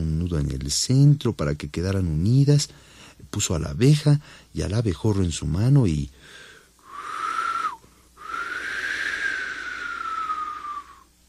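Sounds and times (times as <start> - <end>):
speech: 0.3 - 6.4
person blowing breaths: 6.2 - 11.1.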